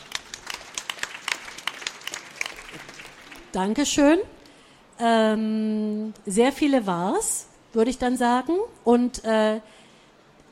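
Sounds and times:
audience applause: 0.0s - 3.6s
speech: 3.6s - 4.4s, 5.0s - 9.8s.

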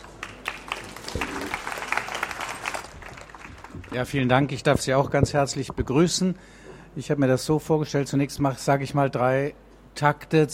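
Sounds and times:
audience applause welcoming Professor Arnold at a talk: 0.0s - 4.1s
speech: 3.9s - 10.5s.

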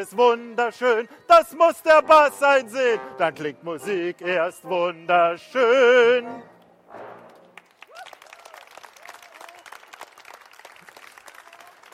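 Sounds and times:
speech: 0.0s - 7.0s
audience applause: 7.3s - 11.9s.

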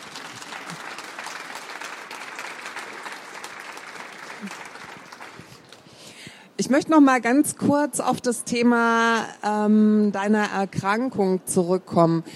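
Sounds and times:
applause: 0.0s - 6.0s
speech: 6.6s - 12.3s.

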